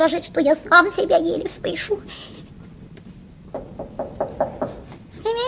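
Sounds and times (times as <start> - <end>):
speech: 0.0 - 2.4
knocking on a door: 3.5 - 4.8.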